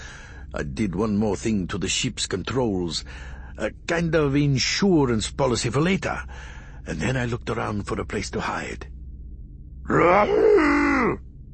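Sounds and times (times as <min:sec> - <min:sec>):
speech: 0:00.5 - 0:08.9, 0:09.8 - 0:11.5
large creature growling and groaning: 0:09.9 - 0:11.2.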